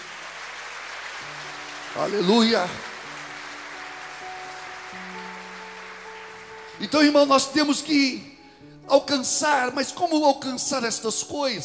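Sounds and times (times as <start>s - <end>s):
audience applause: 0.0s - 7.5s
speech: 2.0s - 2.9s, 6.8s - 11.6s.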